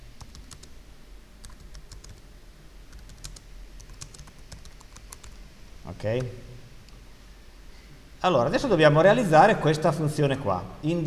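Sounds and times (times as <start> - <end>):
computer keyboard typing a to-do note in code: 0.2 - 0.7, 1.4 - 2.2, 2.9 - 5.4
speech: 5.9 - 6.5, 8.2 - 11.0.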